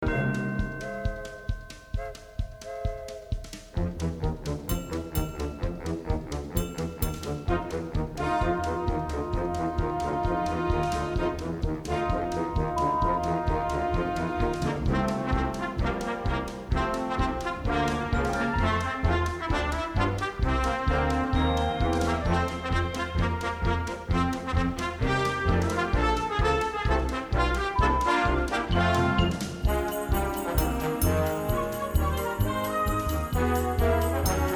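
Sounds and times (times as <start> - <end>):
show instrumental music: 0.0 - 34.5.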